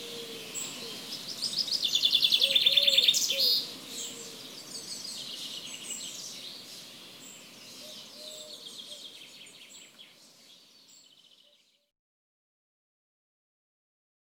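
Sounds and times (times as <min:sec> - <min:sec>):
low cooing notes: 0:00.0 - 0:01.1
other birds chirping: 0:00.0 - 0:11.6.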